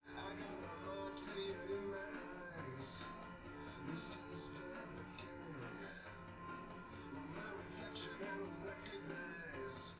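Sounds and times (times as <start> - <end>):
drums: 0.0 - 9.9.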